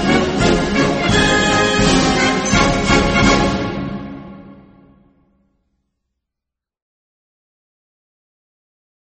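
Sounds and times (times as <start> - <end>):
parade ground march music: 0.0 - 5.3.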